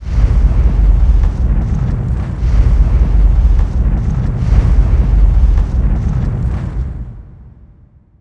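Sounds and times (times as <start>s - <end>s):
fire: 0.0s - 8.0s.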